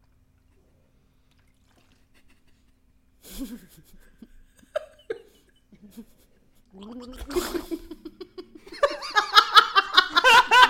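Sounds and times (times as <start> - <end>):
person drinking water: 0.4 - 2.5, 6.6 - 7.8
laughter: 7.1 - 10.6.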